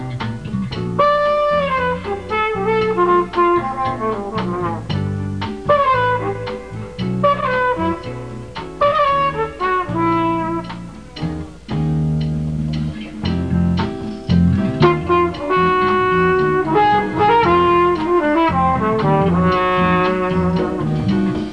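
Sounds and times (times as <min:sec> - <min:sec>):
flugelhorn playing jazz fusion in a rehearsal band: 0:00.0 - 0:21.5.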